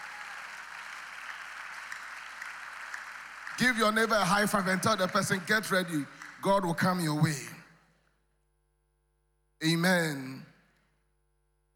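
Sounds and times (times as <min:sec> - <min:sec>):
audience clapping: 0:00.0 - 0:07.4
speech: 0:03.6 - 0:07.6, 0:09.6 - 0:10.4.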